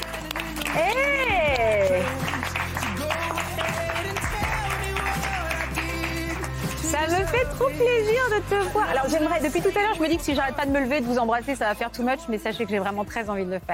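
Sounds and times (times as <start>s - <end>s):
audience applause: 0.0s - 7.0s
speech: 7.5s - 13.7s.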